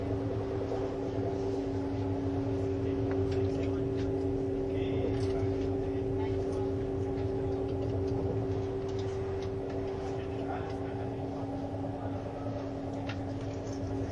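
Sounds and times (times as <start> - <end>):
ICN tilting train rumble and motor drone on the Gotthard line: 0.0 - 14.1
soft voices murmuring: 0.0 - 14.1.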